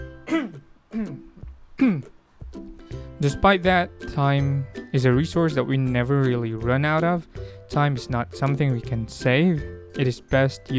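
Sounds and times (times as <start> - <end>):
throat clearing: 0.2 - 2.2
speech: 0.3 - 2.1, 3.2 - 10.7.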